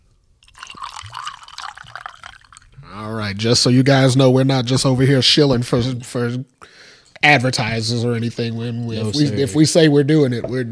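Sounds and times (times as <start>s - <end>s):
whiskey pouring into a cup: 0.4s - 2.9s
speech: 3.3s - 10.7s.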